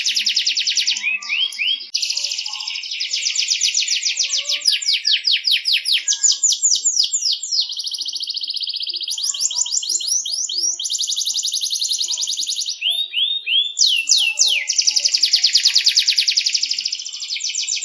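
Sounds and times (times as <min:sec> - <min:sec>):
canary singing: 0:00.0 - 0:17.8.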